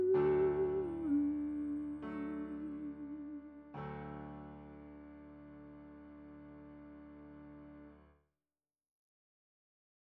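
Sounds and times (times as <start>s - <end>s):
soprano singing: 0.0s - 3.9s.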